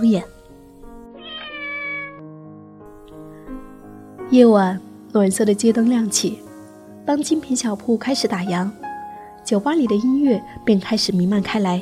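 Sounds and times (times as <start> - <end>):
speech: 0.0 - 0.4, 4.3 - 6.5, 7.1 - 8.8, 9.4 - 11.8
cat meowing: 1.2 - 2.2.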